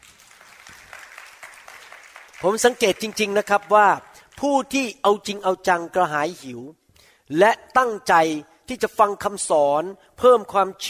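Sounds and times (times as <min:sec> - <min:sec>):
audience clapping: 0:00.0 - 0:04.5
speech: 0:02.4 - 0:10.8.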